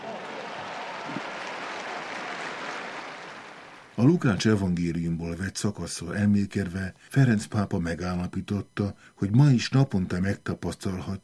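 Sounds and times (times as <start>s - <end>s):
applause for the firefighters: 0.0s - 4.0s
speech: 4.0s - 11.2s.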